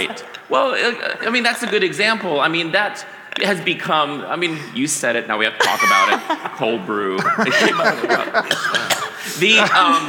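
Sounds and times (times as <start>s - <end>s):
laughter: 0.0s - 0.5s, 5.6s - 10.0s
speech: 0.0s - 10.0s
cough: 8.4s - 9.2s.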